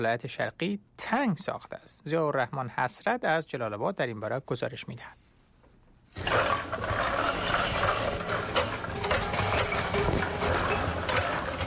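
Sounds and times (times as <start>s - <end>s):
speech: 0.0s - 5.2s
small shampoo and cosmetics factory machines running: 6.2s - 11.6s.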